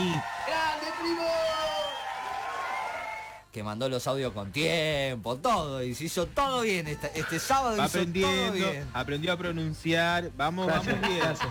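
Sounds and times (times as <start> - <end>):
audience cheering and whooping: 0.0 - 3.4
speech: 3.6 - 11.5
laughter: 10.7 - 11.5.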